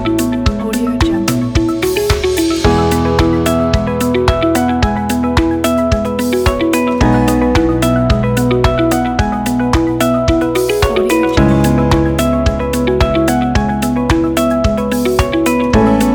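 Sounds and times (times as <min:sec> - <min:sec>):
emotional motivational corporate music: 0:00.0 - 0:16.1.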